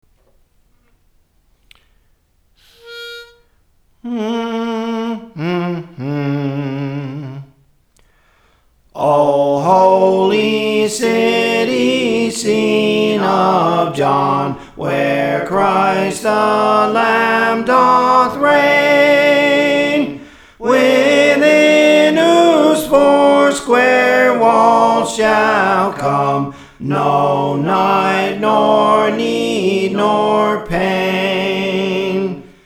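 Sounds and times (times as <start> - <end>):
soprano singing songs: 2.6 - 7.5, 9.0 - 32.6.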